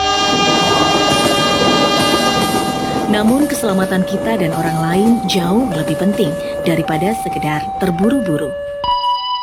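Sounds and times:
train horn-like tonal blare: 0.0s - 5.3s
train rumbling past: 0.0s - 8.3s
speech: 3.1s - 8.7s.

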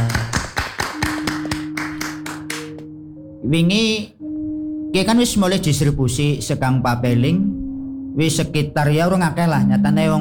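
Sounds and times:
audience claps at a community gathering in Purbalingga: 0.0s - 2.8s
speech: 3.5s - 4.2s, 5.0s - 7.6s, 8.2s - 10.1s.

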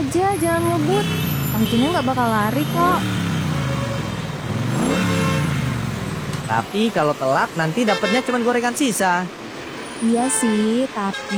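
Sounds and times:
speech: 0.0s - 3.2s, 6.5s - 9.4s, 10.0s - 11.3s
motorbike engine revving as it pulls away: 0.0s - 8.1s.

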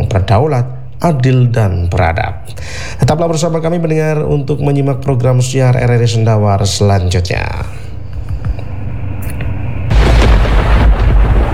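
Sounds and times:
speech: 0.2s - 7.9s
thunder from a lightning strike: 9.9s - 11.5s.

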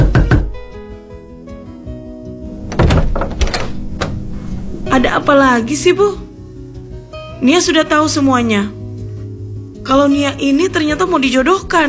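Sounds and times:
mother knocking on her daughter's closed door: 0.0s - 0.6s, 2.6s - 4.2s
speech: 5.0s - 6.3s, 7.4s - 8.8s, 9.9s - 11.8s.

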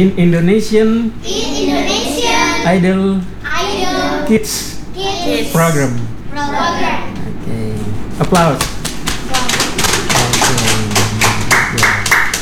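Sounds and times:
speech: 0.0s - 1.8s, 2.6s - 3.4s, 4.3s - 6.8s, 8.2s - 8.7s
children calling out and chattering: 1.2s - 7.4s, 9.1s - 11.4s
children clapping: 8.3s - 12.4s.

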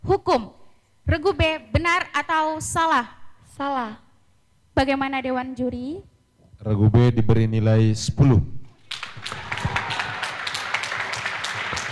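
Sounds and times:
speech: 0.2s - 4.0s, 4.8s - 8.6s
quiz show audience clapping for a team: 8.8s - 11.9s.

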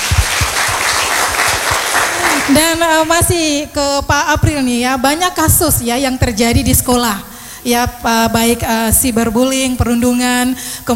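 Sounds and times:
clapping for three panel speakers at a school bullying discussion: 0.0s - 2.8s
steady hiss: 0.0s - 10.9s
speech: 2.5s - 10.9s.

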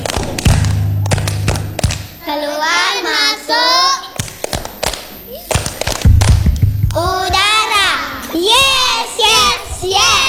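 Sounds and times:
rhythmic hand clapping: 0.0s - 2.2s, 4.2s - 8.9s
low voices singing a song: 2.2s - 4.2s, 7.0s - 10.2s.

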